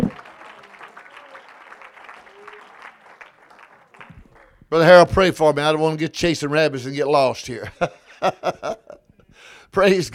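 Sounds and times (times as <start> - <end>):
people clapping: 0.0 - 5.2
speech: 4.7 - 8.8, 9.8 - 10.1.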